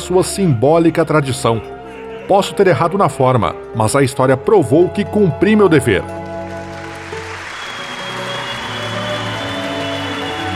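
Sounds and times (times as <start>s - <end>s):
speech: 0.1s - 1.7s, 2.3s - 6.2s
large crowd applauding: 5.5s - 10.5s
long shrill whistle: 7.4s - 10.5s.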